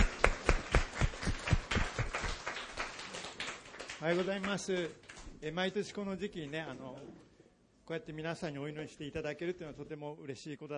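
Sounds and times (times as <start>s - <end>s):
audience applause: 0.0s - 4.7s
speech: 4.0s - 7.3s, 7.9s - 10.7s.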